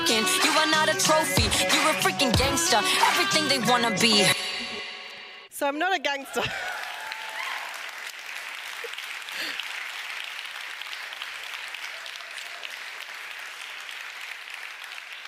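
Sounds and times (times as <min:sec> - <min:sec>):
speech: 0:00.2 - 0:04.5, 0:05.6 - 0:06.7
crowd applause: 0:06.4 - 0:15.2.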